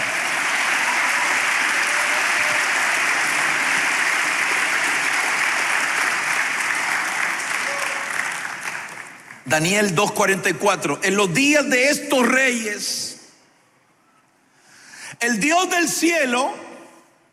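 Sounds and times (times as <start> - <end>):
crowd clapping: 0.0 - 9.6
speech: 9.5 - 13.1, 15.2 - 16.6.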